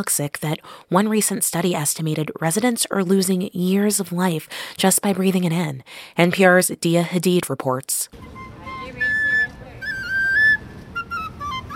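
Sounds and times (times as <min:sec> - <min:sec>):
speech: 0:00.0 - 0:08.5
street vendor playing a flute: 0:08.1 - 0:11.7.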